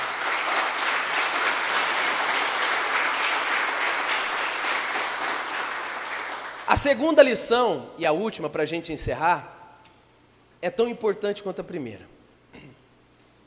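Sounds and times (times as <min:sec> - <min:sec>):
audience applauding: 0:00.0 - 0:07.0
speech: 0:06.8 - 0:09.6, 0:10.6 - 0:12.7.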